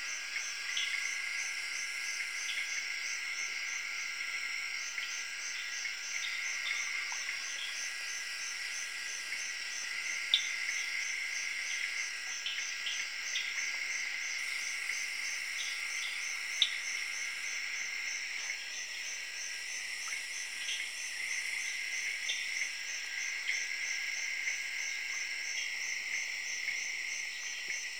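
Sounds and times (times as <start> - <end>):
crickets chirping in Zaire: 0.0 - 27.9.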